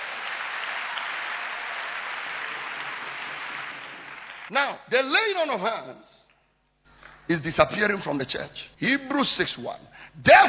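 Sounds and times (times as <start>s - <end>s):
audience clapping hands: 0.0s - 4.5s
speech: 4.5s - 6.2s, 7.3s - 10.4s.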